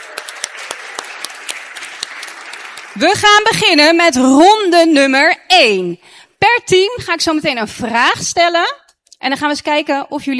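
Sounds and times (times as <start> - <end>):
applause for teams at a quiz game: 0.0 - 3.1
speech: 3.0 - 10.3.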